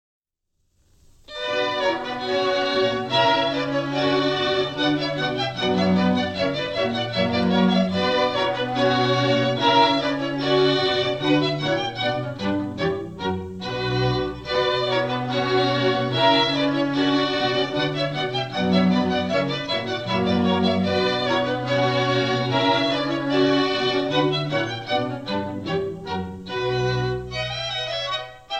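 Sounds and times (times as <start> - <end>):
orchestral baroque suite: 1.0 - 28.5.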